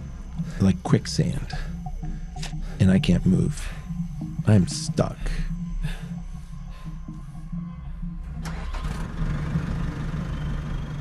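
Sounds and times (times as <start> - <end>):
speech: 0.4 - 1.7, 2.8 - 3.8, 4.5 - 5.5
backhoe engine running: 8.2 - 10.9.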